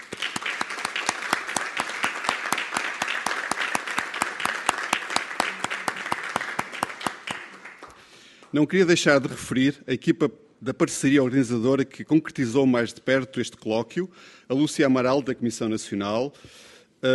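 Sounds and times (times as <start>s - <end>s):
audience applauding: 0.0s - 8.6s
speech: 8.5s - 17.1s.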